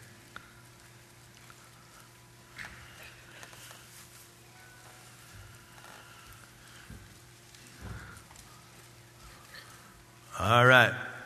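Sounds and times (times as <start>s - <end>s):
Bible pages turning: 2.5s - 9.1s
speech: 10.4s - 11.0s.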